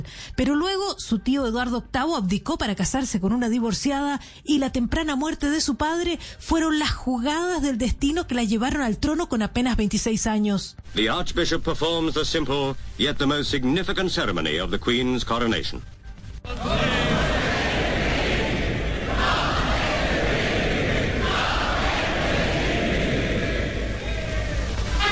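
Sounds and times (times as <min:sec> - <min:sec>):
speech: 0:00.0 - 0:17.1
large crowd cheering at a royal coronation: 0:16.5 - 0:25.0.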